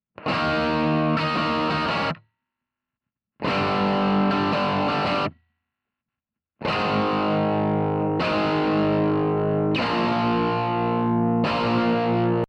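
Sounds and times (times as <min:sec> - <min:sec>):
guitar: 0:00.2 - 0:02.2, 0:03.4 - 0:05.4, 0:06.6 - 0:12.4.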